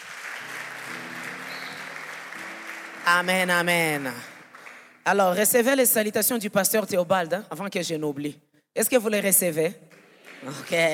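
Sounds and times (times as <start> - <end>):
church congregation applauding for the youth: 0.0 - 5.6, 9.9 - 10.9
speech: 3.1 - 4.3, 5.0 - 10.9.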